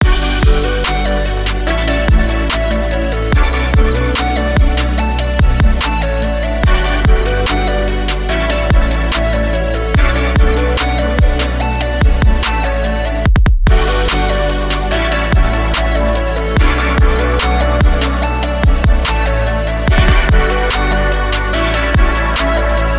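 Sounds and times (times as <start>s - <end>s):
synthpop music: 0.0s - 22.9s.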